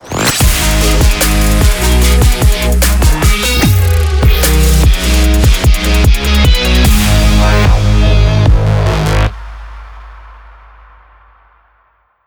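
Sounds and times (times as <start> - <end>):
instrumental music in G: 0.4 - 9.3.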